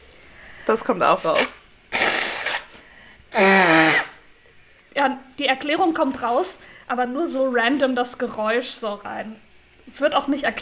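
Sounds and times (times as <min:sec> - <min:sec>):
speech: 0:00.7 - 0:01.6, 0:05.0 - 0:10.6
person blowing nose: 0:01.4 - 0:04.2.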